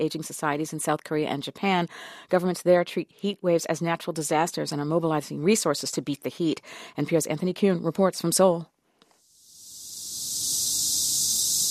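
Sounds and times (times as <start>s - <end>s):
speech: 0.0s - 8.7s
deafening chorus of cicadas in the midday heat: 9.3s - 11.6s.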